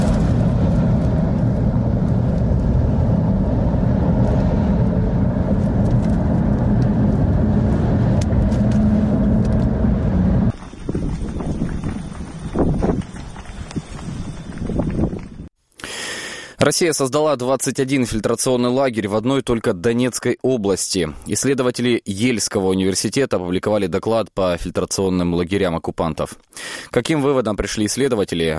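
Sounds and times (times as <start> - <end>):
strong wind roaring and buffeting the microphone: 0.0 - 15.5
speech: 16.7 - 28.5.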